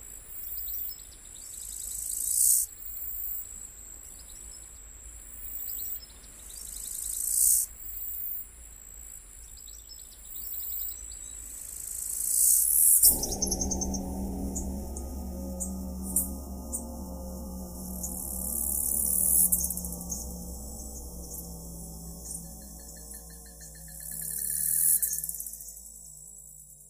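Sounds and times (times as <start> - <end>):
forest ambience: 10.4 - 26.8.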